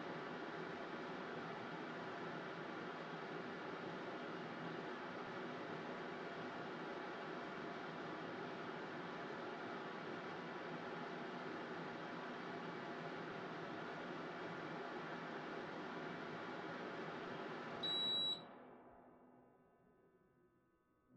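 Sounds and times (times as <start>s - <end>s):
air purifier running: 0.0s - 18.8s.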